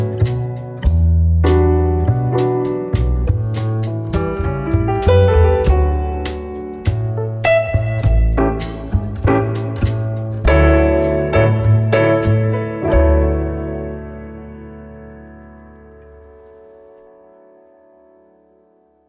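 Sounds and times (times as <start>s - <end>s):
mid tempo samba: 0.0s - 14.3s.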